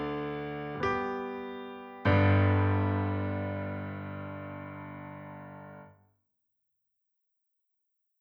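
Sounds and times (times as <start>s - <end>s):
piano: 0.0s - 6.0s.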